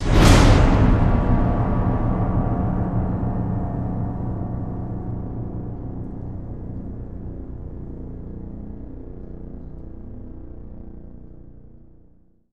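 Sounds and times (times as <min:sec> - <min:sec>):
percussion ending: 0:00.0 - 0:07.8.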